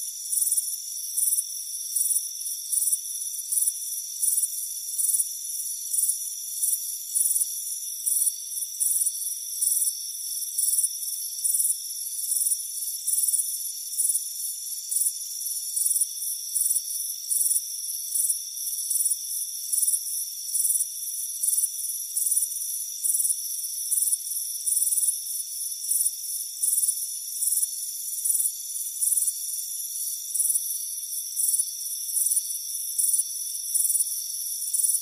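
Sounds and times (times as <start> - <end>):
constant insect hiss: 0.0 - 35.0
cricket chirping: 0.0 - 35.0.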